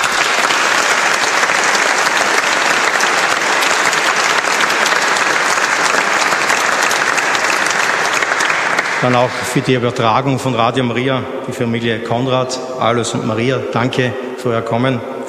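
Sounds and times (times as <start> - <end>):
audience applause: 0.0 - 10.0
speech: 9.0 - 15.2.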